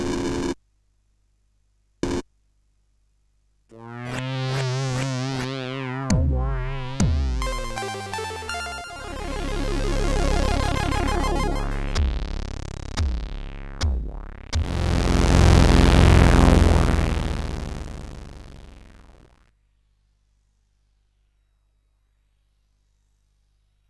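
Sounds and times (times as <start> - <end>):
intro on CSG8580R5 sound chip: 3.8 - 19.3.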